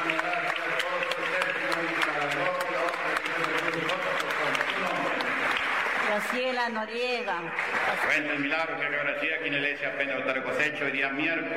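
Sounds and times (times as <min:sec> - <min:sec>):
audience applauding: 0:00.0 - 0:09.1
speech: 0:06.4 - 0:11.5.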